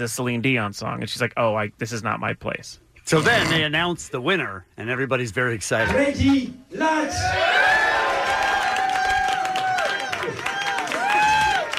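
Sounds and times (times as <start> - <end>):
speech: 0.0 - 7.6
audience cheering and applauding: 7.0 - 11.7.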